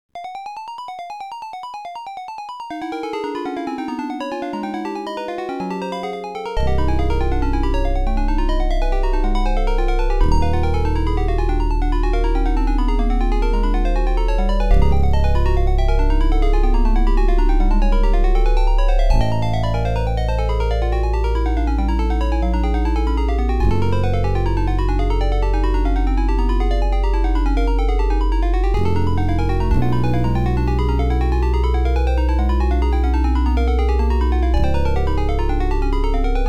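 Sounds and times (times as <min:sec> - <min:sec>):
OPL3 FM synthesizer music: 0:02.8 - 0:36.4.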